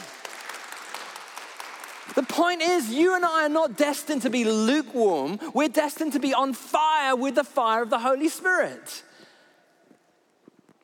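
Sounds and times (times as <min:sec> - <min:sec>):
audience clapping: 0:00.0 - 0:03.2
speech: 0:02.1 - 0:09.1.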